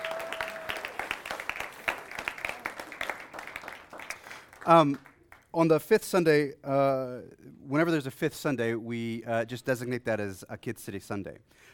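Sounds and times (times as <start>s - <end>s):
audience hand clapping: 0.0s - 5.6s
speech: 4.7s - 11.7s.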